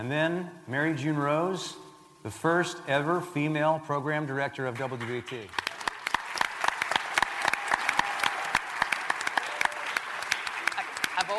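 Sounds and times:
speech: 0.0 - 5.7
audience applause: 4.8 - 11.3.

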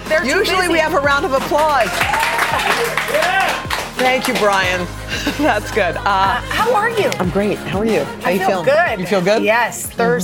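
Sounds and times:
speech: 0.1 - 10.2
round of applause: 1.4 - 4.9.

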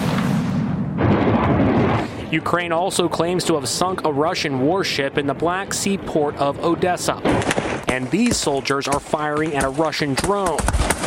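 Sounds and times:
missile explosion bringing down a helicopter: 0.0 - 3.4, 7.1 - 8.7
speech: 2.3 - 10.9.

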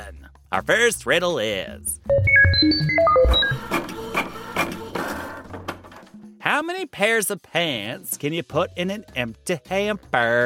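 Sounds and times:
speech: 0.5 - 3.8, 6.6 - 10.4
riddle machine electronic beeps: 2.1 - 3.8.

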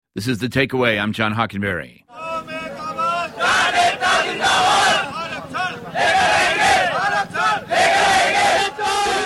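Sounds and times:
speech: 0.2 - 2.3
large crowd of protesters shouting and chanting: 2.1 - 9.2.

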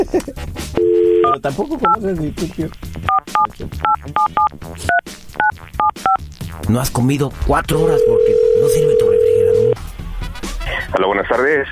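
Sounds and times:
telephone number being dialed with touch-tone beeps: 0.8 - 1.4, 3.1 - 6.2, 8.0 - 9.8
speech: 1.4 - 2.9, 6.7 - 9.1, 10.9 - 11.7.

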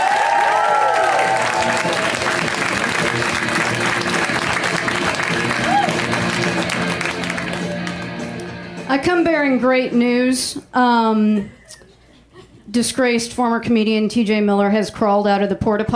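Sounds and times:
comedy show audience clapping and cheering: 0.0 - 8.9
speech: 9.0 - 11.6, 12.7 - 15.9.

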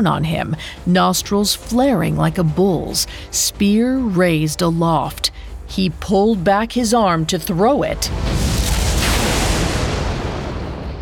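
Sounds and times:
speech: 0.0 - 8.5
lightning bolt crash: 8.1 - 11.0.

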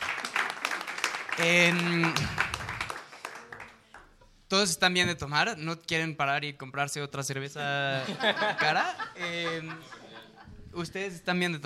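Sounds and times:
audience applause: 0.0 - 4.0
speech: 1.4 - 2.5, 4.5 - 10.0, 10.8 - 11.6
laughter: 7.8 - 10.7.

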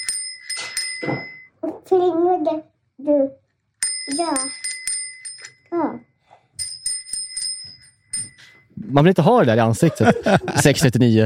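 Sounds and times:
bicycle bell ringing: 0.0 - 1.5, 3.8 - 5.7, 6.6 - 8.7
speech: 1.0 - 3.4, 4.1 - 4.6, 5.7 - 6.1, 8.8 - 11.2
laughter: 9.6 - 11.2.

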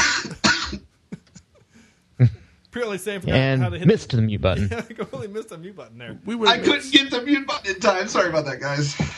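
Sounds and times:
harsh cough: 0.0 - 1.0
soft throat sounds: 2.2 - 2.5
speech: 2.2 - 9.1.

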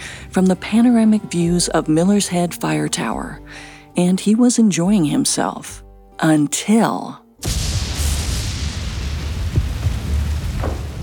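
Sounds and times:
speech: 0.4 - 7.6
deep rumble of thunder: 7.4 - 11.0.

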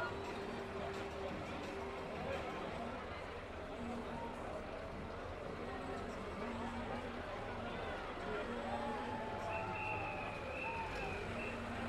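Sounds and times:
crowd murmur at a traditional goose riding ceremony in Belgium: 0.0 - 11.8
whistles: 9.4 - 11.8.

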